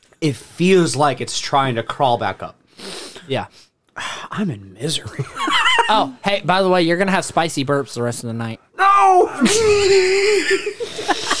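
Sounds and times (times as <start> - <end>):
speech: 0.2 - 2.6, 3.2 - 11.2
nose blowing: 2.7 - 3.3
laughter: 5.0 - 6.2, 9.4 - 11.3.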